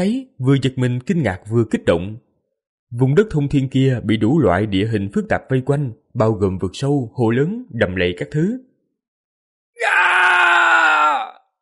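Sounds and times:
speech: 0.0s - 2.2s, 2.9s - 8.7s
agonized human scream: 9.8s - 11.5s.

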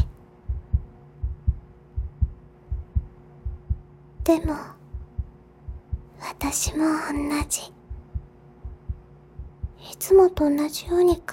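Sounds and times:
heartbeat pounding: 0.0s - 9.8s
speech: 4.3s - 4.8s, 6.3s - 7.8s, 10.0s - 11.3s.

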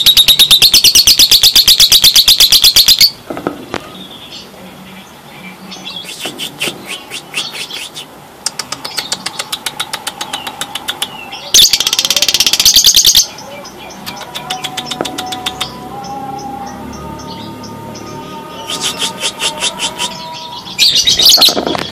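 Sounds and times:
bird chirping: 0.0s - 21.8s.

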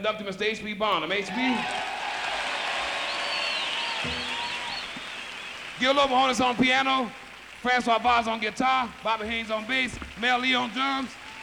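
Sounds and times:
speech: 0.0s - 1.9s, 5.8s - 11.2s
audience applause: 1.3s - 11.4s
high wavering whistles: 2.8s - 5.8s.

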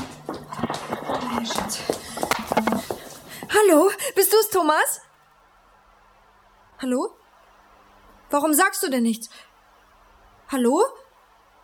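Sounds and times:
mother's footsteps approaching: 0.0s - 4.4s
speech: 1.4s - 2.0s, 3.6s - 5.0s, 6.8s - 7.2s, 8.3s - 9.5s, 10.5s - 11.0s.

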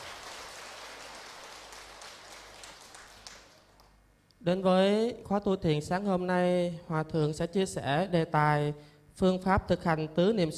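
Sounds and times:
audience at a morning Buddhist meditation retreat applauding a venerable monk: 0.0s - 3.7s
speech: 4.4s - 10.5s.

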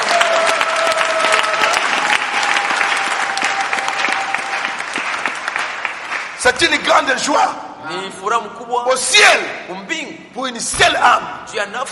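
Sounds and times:
church congregation clapping: 0.0s - 7.1s
speech: 6.5s - 11.9s.

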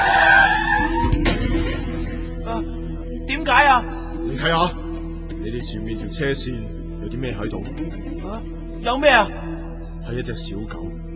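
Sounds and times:
car tires screeching in a hard skid: 0.0s - 2.2s
speech: 4.4s - 4.8s, 5.6s - 11.1s.

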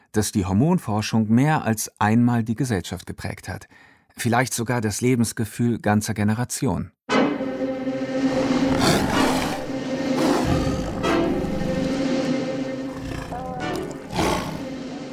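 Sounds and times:
speech: 0.2s - 7.5s
lion roaring: 8.6s - 15.1s.

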